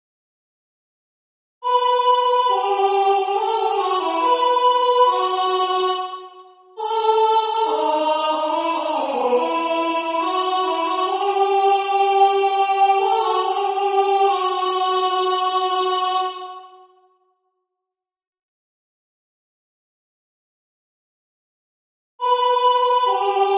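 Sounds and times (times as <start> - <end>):
tenor singing: 1.6 - 16.7, 22.2 - 23.5.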